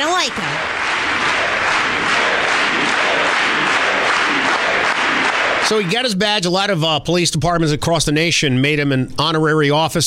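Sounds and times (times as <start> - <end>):
large audience applause: 0.0 - 6.6
speech: 5.7 - 10.0.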